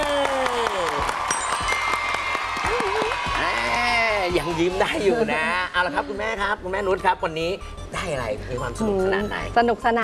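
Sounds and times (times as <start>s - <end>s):
audience applause at a competition show: 0.0s - 4.8s
crowd cheering: 0.0s - 5.2s
speech: 4.4s - 10.0s.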